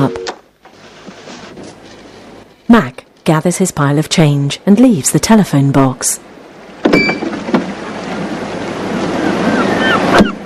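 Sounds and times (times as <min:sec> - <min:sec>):
speech: 0:02.7 - 0:06.4, 0:07.0 - 0:07.2
gentle waves over bay rocks: 0:06.2 - 0:10.4.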